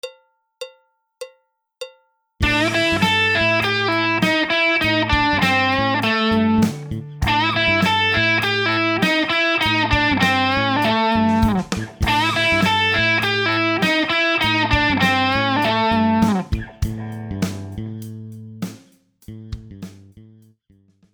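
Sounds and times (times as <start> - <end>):
guitar exercise: 2.4 - 18.5.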